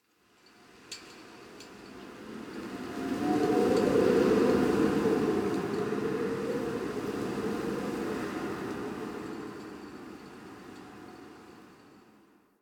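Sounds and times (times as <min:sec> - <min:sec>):
exterior winter wind: 0:00.0 - 0:12.6.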